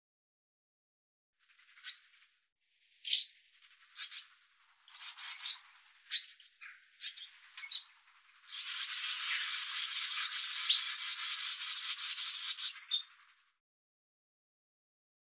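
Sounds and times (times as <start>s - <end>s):
bird scratchy rasping chatter: 4.9s - 13.2s.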